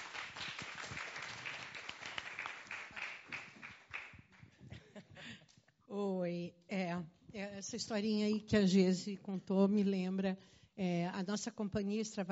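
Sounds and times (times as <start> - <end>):
round of applause: 0.0 - 4.6
speech: 5.9 - 12.3.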